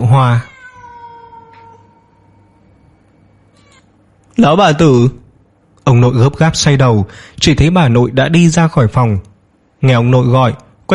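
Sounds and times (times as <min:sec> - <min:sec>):
wild cat yowling: 0:00.0 - 0:02.6
speech: 0:00.1 - 0:00.5, 0:04.4 - 0:05.2, 0:05.8 - 0:10.9.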